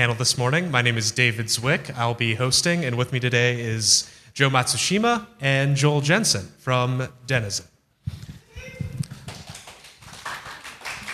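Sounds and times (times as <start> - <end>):
speech: 0.0 - 8.2
audience applause: 9.2 - 11.1.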